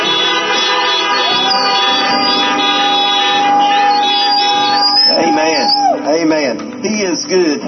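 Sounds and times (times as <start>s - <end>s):
horns tooting: 0.0s - 6.0s
speech: 7.2s - 7.6s.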